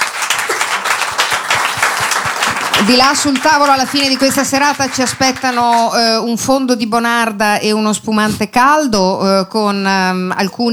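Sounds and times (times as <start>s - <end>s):
audience applause: 0.0s - 6.0s
speech: 2.8s - 10.7s.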